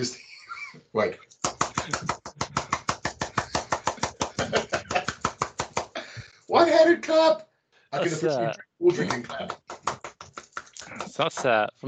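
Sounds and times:
speech: 0.0 - 0.3, 0.9 - 2.3, 6.6 - 9.6, 11.2 - 11.8
one-handed clap demonstration: 1.4 - 6.0, 9.0 - 11.6
laughter: 1.6 - 5.2, 8.0 - 9.7, 10.8 - 11.7.

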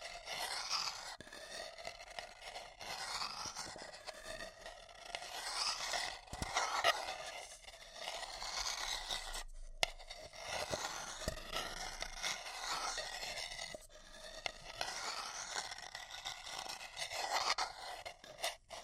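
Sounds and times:
fingers scratching and rubbing a paper cup: 0.0 - 18.8.

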